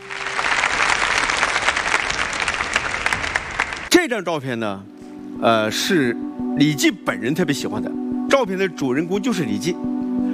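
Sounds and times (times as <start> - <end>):
audience applause: 0.0 - 3.9
speech: 4.1 - 9.9.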